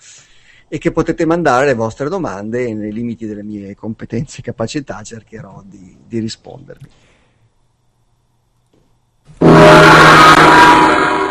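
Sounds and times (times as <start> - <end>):
speech: 0.7 - 7.1
loud gong strike: 9.4 - 11.2.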